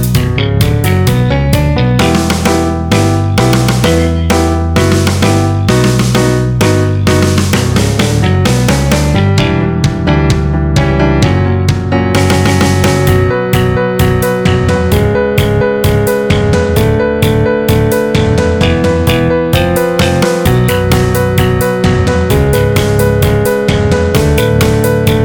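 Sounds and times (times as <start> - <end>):
epic neoclassical metal etude backing track: 0.0 - 25.2.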